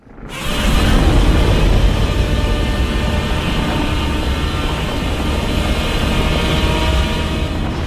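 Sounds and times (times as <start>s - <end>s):
redesigned monster roar from a film: 0.3s - 7.8s.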